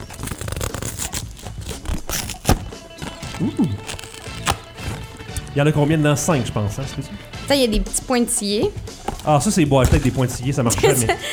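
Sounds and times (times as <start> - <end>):
cardboard box being opened: 0.0 - 5.2, 9.0 - 10.1
speech: 3.4 - 4.0, 5.6 - 11.3
laughter: 10.6 - 11.3.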